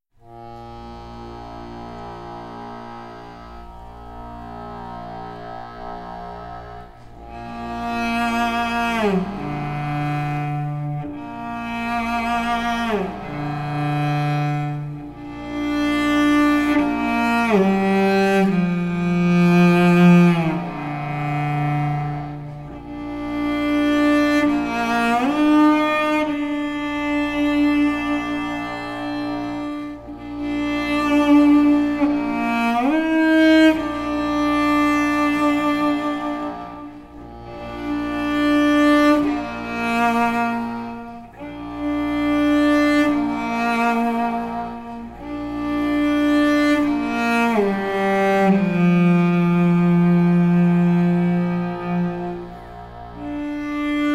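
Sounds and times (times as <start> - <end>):
cello: 0.0 - 54.1.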